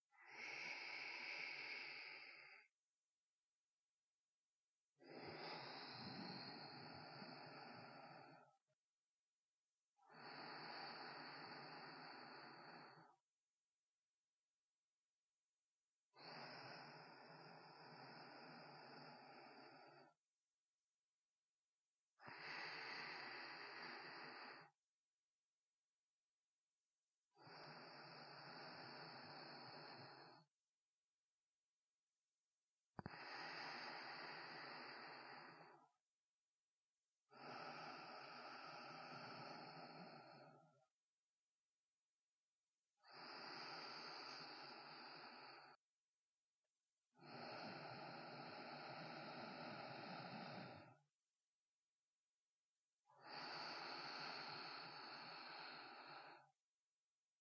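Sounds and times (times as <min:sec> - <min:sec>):
sparse sleeping breaths: 0:00.2 - 0:02.8, 0:05.0 - 0:08.6, 0:10.0 - 0:13.2, 0:16.2 - 0:20.2, 0:22.2 - 0:24.8, 0:27.4 - 0:30.5, 0:33.0 - 0:36.0, 0:37.3 - 0:40.9, 0:43.0 - 0:45.8, 0:47.2 - 0:51.0, 0:53.1 - 0:56.6.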